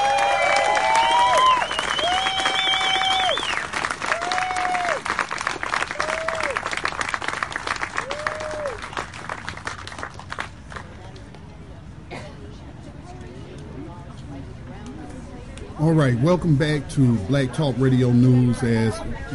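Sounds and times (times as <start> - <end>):
cheers and whistles: 0.0 - 5.0
crowd applause at a live rally: 0.0 - 10.9
speech: 15.9 - 19.3.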